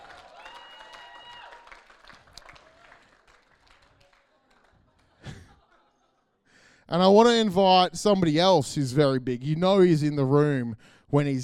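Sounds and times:
audience cheers: 0.0s - 4.7s
audience applause: 0.0s - 5.4s
speech: 6.9s - 11.4s.

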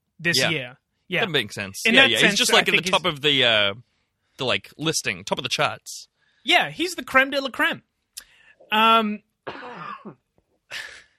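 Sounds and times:
speech: 0.2s - 7.9s, 8.7s - 10.9s
person sneezing: 9.5s - 11.1s.

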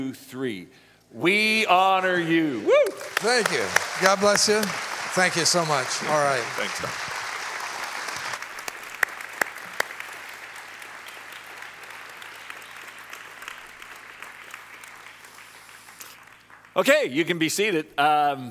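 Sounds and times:
speech: 0.0s - 7.1s, 16.8s - 18.4s
audience applauding: 1.5s - 17.0s.

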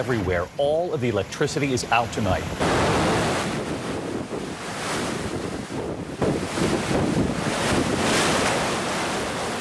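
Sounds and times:
speech: 0.0s - 3.1s
150-mile-an-hour hurricane winds: 0.0s - 9.5s
crashing surf: 2.5s - 9.5s.

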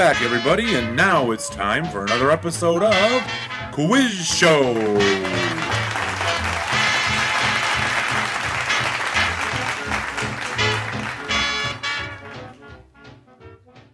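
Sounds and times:
speech: 0.0s - 5.8s
rhythmic backing tune: 0.0s - 13.9s
studio audience clapping and cheering at a quiz show: 4.0s - 12.6s.

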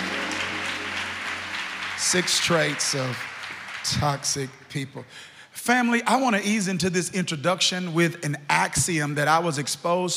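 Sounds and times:
audience clapping hands: 0.0s - 5.0s
speech: 2.0s - 10.1s.

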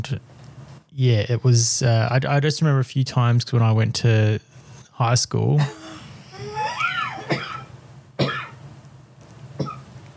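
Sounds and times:
speech: 0.0s - 6.0s
person coughing: 5.6s - 8.6s, 9.6s - 9.8s.

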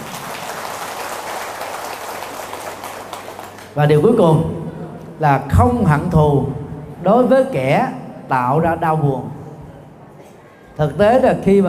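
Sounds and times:
audience applause: 0.0s - 3.8s
speech: 3.8s - 4.6s, 5.2s - 9.4s, 10.8s - 11.6s.

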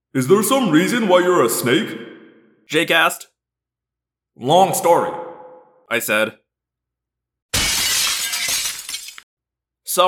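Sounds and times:
speech: 0.1s - 2.1s, 2.7s - 3.3s, 4.4s - 5.2s, 5.9s - 6.4s
window glass shattering: 7.5s - 9.3s.

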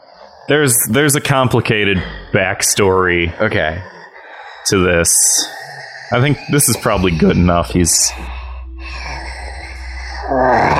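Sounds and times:
speech: 0.5s - 4.0s, 4.7s - 8.4s
person growling like a wolf: 1.7s - 10.7s.

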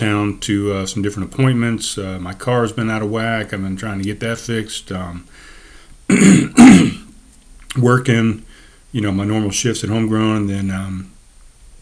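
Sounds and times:
speech: 0.0s - 5.5s, 6.1s - 7.0s, 7.7s - 11.2s
phlegmy throat clearing: 6.1s - 7.1s.

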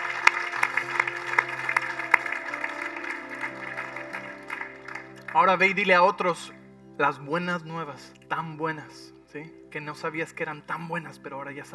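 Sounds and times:
audience applause: 0.0s - 5.7s
speech: 5.4s - 11.7s.

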